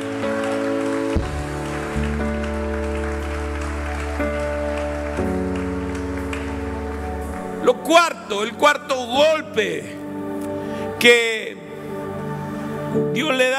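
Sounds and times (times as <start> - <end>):
audience applauding: 0.0 - 8.9
organ-like keyboard chords: 0.0 - 13.5
speech: 7.9 - 10.0, 11.0 - 11.4, 12.9 - 13.5.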